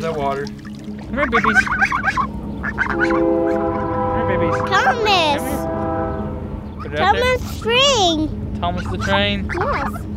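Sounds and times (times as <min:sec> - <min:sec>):
speech: 0:00.0 - 0:05.7, 0:06.9 - 0:10.1
geese honking: 0:01.1 - 0:07.7, 0:08.6 - 0:10.1.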